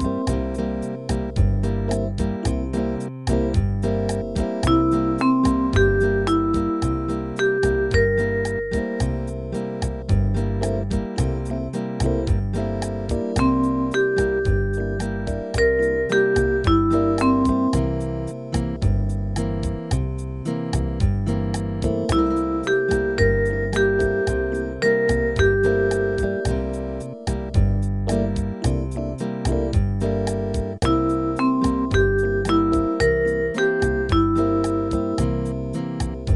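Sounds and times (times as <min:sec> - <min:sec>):
dominant seventh arpeggio from the root: 0:00.0 - 0:36.3.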